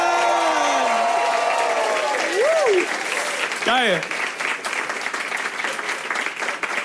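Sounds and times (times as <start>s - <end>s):
audience cheering: 0.0s - 4.0s
audience applause: 0.0s - 6.8s
speech: 3.7s - 4.2s.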